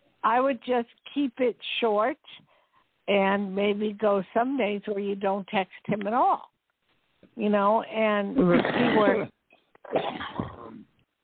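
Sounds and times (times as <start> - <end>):
speech: 0.2 - 2.5, 3.1 - 6.5, 7.4 - 10.5
cough into the phone: 8.4 - 10.8.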